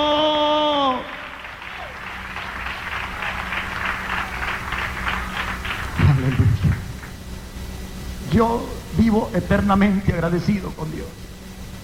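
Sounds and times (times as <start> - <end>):
audience applause: 0.7 - 7.2
speech: 8.4 - 11.3.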